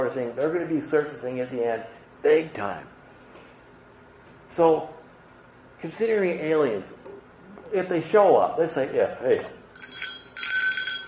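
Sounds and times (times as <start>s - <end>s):
speech: 0.1s - 3.0s, 4.5s - 5.0s, 5.8s - 7.0s, 7.7s - 9.6s
bear bell jingling as it is rung: 9.7s - 11.0s.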